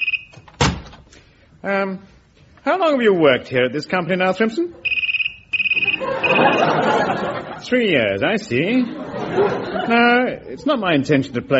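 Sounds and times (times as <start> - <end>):
office door closing: 0.4 - 1.1
speech: 1.6 - 4.8, 6.0 - 11.5
laughter: 5.8 - 8.0, 8.6 - 10.9.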